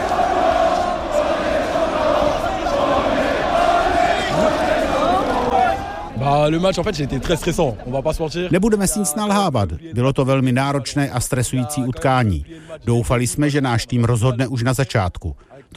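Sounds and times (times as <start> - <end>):
crowd cheering in street: 0.0 - 6.6
speech: 6.5 - 15.7.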